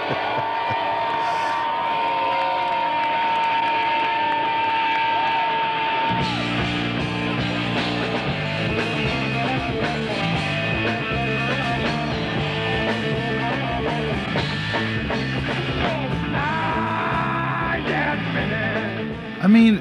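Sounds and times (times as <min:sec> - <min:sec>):
laughter: 0:00.0 - 0:01.7
concert crowd cheering at a 1990s Seattle concert: 0:00.0 - 0:19.7
rock band music: 0:06.1 - 0:19.7.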